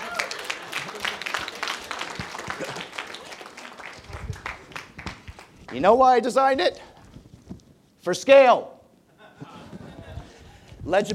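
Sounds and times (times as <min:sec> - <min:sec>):
applause: 0:00.0 - 0:05.8
laughter: 0:00.5 - 0:01.6, 0:02.4 - 0:03.2, 0:09.1 - 0:10.7
speech: 0:05.7 - 0:06.9, 0:08.0 - 0:08.7, 0:10.9 - 0:11.1.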